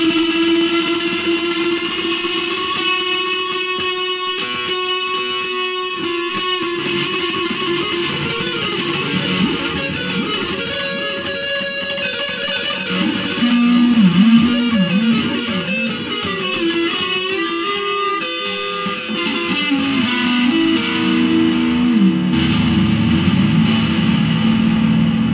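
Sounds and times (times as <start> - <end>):
fretless instrument: 0.0 - 25.3.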